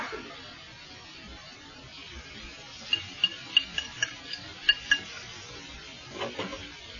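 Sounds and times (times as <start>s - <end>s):
pots and dishes clinking in a kitchen while stew is cooking: 2.9s - 5.2s.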